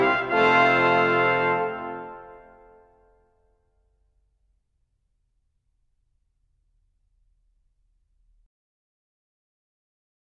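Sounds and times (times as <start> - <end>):
brass suite: 0.0 - 3.0.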